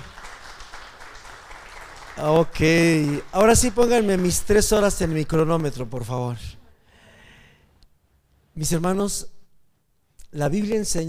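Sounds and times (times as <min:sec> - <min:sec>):
audience applause: 0:00.0 - 0:05.4
speech: 0:02.2 - 0:06.6, 0:08.6 - 0:09.4, 0:10.3 - 0:11.0.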